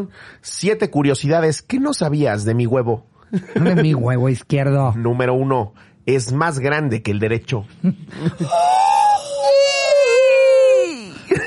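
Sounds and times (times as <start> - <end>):
speech: 0.0 - 9.7
laughter: 8.0 - 8.9, 11.1 - 11.4
cat yowling in the street: 8.5 - 11.2.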